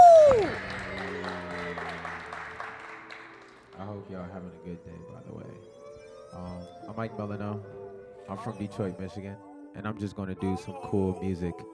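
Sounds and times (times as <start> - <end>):
person whooping: 0.0 - 0.8
audience applauding: 0.0 - 3.9
speech: 6.6 - 11.7.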